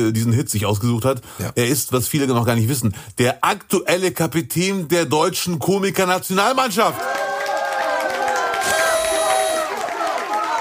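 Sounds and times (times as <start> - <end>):
speech: 0.0 - 7.3
audience applause: 6.9 - 10.5.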